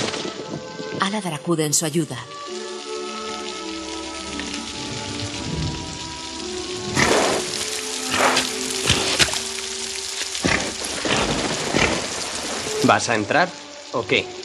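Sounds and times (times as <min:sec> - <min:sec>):
heavy rain pouring: 0:00.0 - 0:14.4
speech: 0:01.0 - 0:02.6, 0:12.8 - 0:14.4
low rumbles of thunder: 0:04.2 - 0:09.5, 0:10.4 - 0:13.2.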